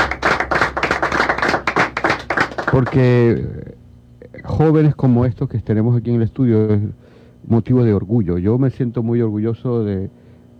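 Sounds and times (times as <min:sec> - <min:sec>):
studio applause for young Venezuelans: 0:00.0 - 0:03.4
speech: 0:02.8 - 0:03.8, 0:04.5 - 0:10.5.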